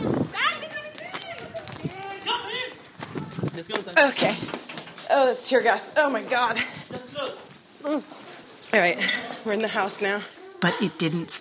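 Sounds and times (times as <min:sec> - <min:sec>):
hurried footsteps of protesters running: 0:00.0 - 0:09.0
people shouting and talking: 0:00.0 - 0:11.4
speech: 0:04.0 - 0:04.5, 0:05.1 - 0:06.8, 0:07.8 - 0:08.1, 0:08.7 - 0:11.4.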